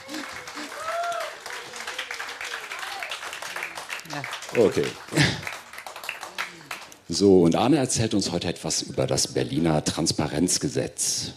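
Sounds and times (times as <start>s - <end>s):
audience applause: 0.0s - 7.2s
speech: 4.1s - 5.5s, 7.2s - 11.3s.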